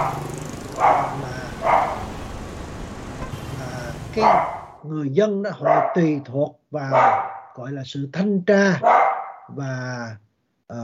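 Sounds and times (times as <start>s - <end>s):
dog barking: 0.0s - 2.2s, 4.2s - 4.8s, 5.6s - 6.2s, 6.9s - 7.5s, 8.8s - 9.5s
speech: 4.2s - 10.8s.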